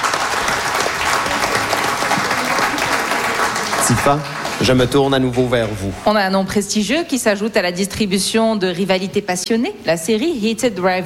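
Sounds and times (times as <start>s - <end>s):
audience applause: 0.0s - 6.0s
speech: 3.9s - 11.0s.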